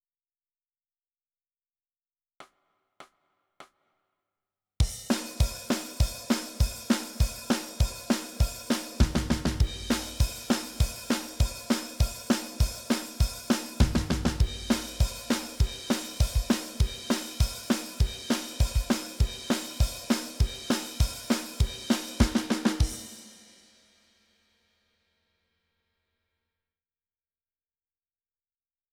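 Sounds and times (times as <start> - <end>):
drums: 4.8 - 24.2.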